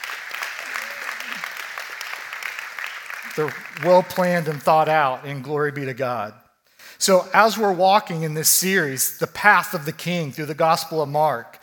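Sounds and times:
round of applause from a crowd: 0:00.0 - 0:05.0
speech: 0:03.4 - 0:06.4, 0:07.0 - 0:11.6.

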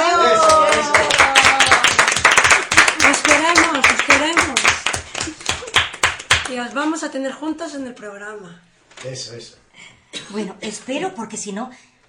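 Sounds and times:
loud applause: 0:00.0 - 0:06.5
speech: 0:06.7 - 0:11.9.

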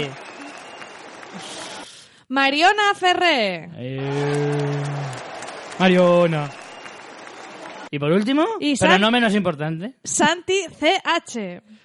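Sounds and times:
speech: 0:00.0 - 0:00.2, 0:01.3 - 0:01.6, 0:02.3 - 0:04.3, 0:05.8 - 0:06.6, 0:07.9 - 0:11.8
applause from a small group: 0:00.0 - 0:02.1, 0:04.0 - 0:09.0.

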